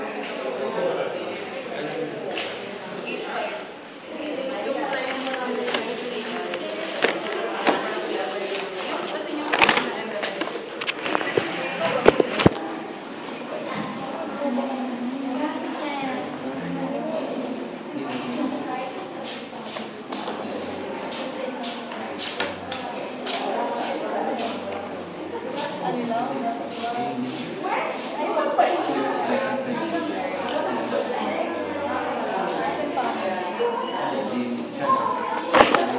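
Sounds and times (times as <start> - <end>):
classroom chatter without teacher: 0.0 - 35.9.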